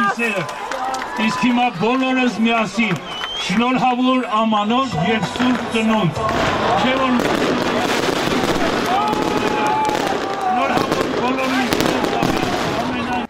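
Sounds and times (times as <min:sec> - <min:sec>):
crowd voices: 0:00.0 - 0:13.2
speech: 0:00.2 - 0:07.9
high whistling tones: 0:03.0 - 0:03.6
fireworks at a New Year's tree-lighting celebration in a town square: 0:05.2 - 0:13.2.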